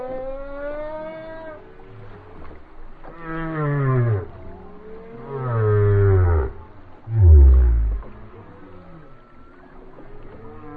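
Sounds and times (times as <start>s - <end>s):
whale song: 3.1s - 9.7s.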